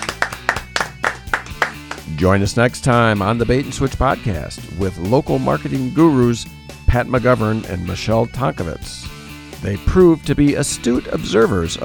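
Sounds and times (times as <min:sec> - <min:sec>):
people clapping hands: 0:00.0 - 0:02.1
speech: 0:02.1 - 0:09.0, 0:09.6 - 0:11.8.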